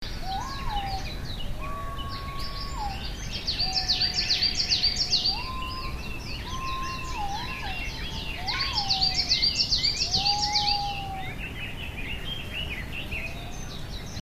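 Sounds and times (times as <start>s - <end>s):
small birds twittering: 0.0s - 14.2s
White-bellied green pigeon calling in mellow fluted whistles: 0.3s - 3.0s, 3.6s - 11.4s.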